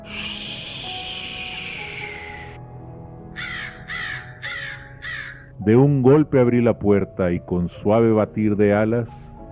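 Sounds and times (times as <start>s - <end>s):
steady rushing hiss: 0.0s - 2.6s
raven cawing: 0.1s - 2.6s, 3.3s - 5.6s
speech: 5.6s - 9.3s.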